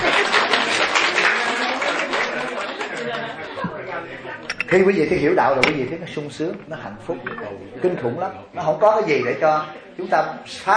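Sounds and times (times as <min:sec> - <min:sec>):
audience applause at a Buddhist sermon: 0:00.0 - 0:03.5
lively crowd chatter: 0:00.0 - 0:10.7
speech: 0:04.7 - 0:10.7.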